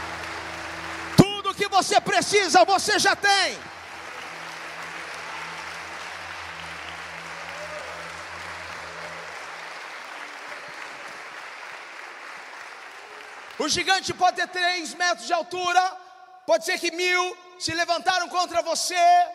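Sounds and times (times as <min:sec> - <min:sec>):
audience applauding: 0:00.0 - 0:14.3
speech: 0:01.6 - 0:03.8, 0:13.6 - 0:19.3.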